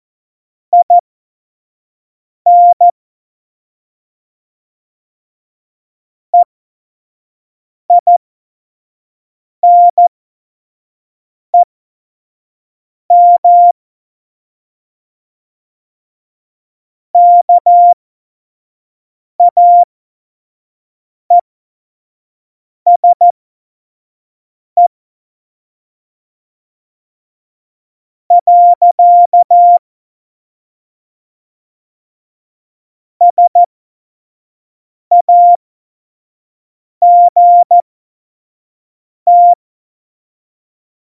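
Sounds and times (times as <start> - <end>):
CW Morse code beeps: 0.8 - 1.0, 2.5 - 2.9, 7.9 - 8.2, 9.6 - 10.0, 13.1 - 13.7, 17.2 - 18.0, 19.4 - 19.9, 22.9 - 23.3, 28.3 - 29.8, 33.2 - 33.7, 35.1 - 35.6, 37.0 - 37.8, 39.3 - 39.6.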